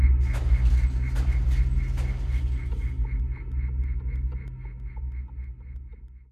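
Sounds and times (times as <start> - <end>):
factory ambience: 0.2 - 3.9.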